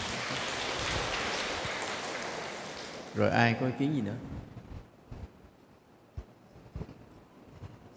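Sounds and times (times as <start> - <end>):
group clapping: 0.0 - 3.7
speech: 3.2 - 4.5.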